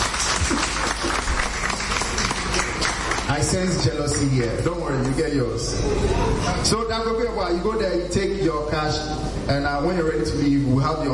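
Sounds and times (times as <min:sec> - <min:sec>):
audience applause at a prize giveaway: 0:00.0 - 0:04.2
speech: 0:03.4 - 0:11.1.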